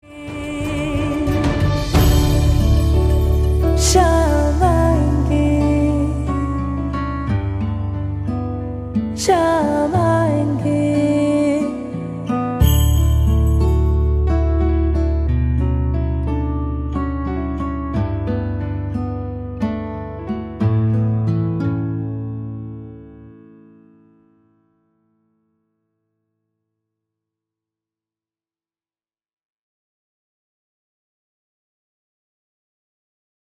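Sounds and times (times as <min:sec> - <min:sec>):
instrumental music: 0:00.0 - 0:24.4.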